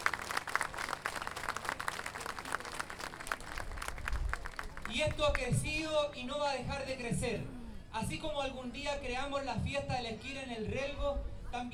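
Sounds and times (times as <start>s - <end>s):
crowd clapping at an international folk poets' gathering in a mountain town in Chile: 0.0s - 5.7s
speech: 5.0s - 11.7s.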